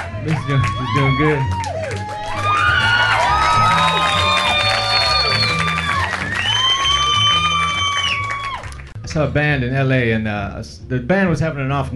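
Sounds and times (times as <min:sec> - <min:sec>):
audience clapping: 0:00.0 - 0:09.0
speech: 0:00.2 - 0:01.7, 0:09.2 - 0:11.9.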